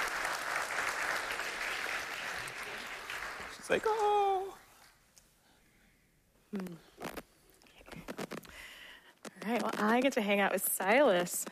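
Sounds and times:
church congregation clapping after a baptism: 0.0s - 4.5s
speech: 3.7s - 4.3s, 6.5s - 7.1s, 9.5s - 11.5s.

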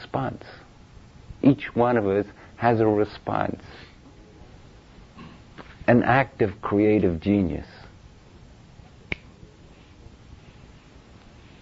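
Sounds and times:
speech: 0.1s - 0.6s, 1.4s - 3.9s, 5.9s - 7.8s
finger snap: 9.1s - 9.4s.

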